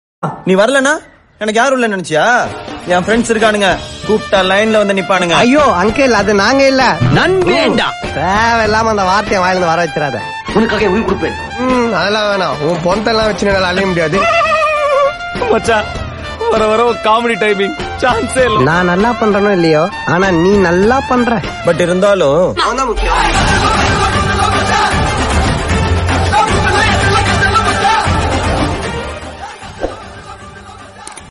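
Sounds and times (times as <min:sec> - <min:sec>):
Tamil background music: 0:00.2 - 0:31.3.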